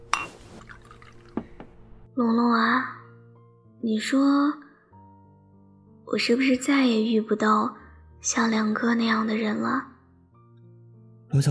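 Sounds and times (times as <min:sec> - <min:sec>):
sparkling water pouring into a glass: 0:00.1 - 0:01.4
speech: 0:02.2 - 0:03.0, 0:03.8 - 0:04.6, 0:06.1 - 0:09.9.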